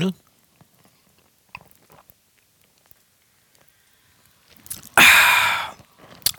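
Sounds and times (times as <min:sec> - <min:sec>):
person taking a sip of a drink: 0:04.7 - 0:06.3.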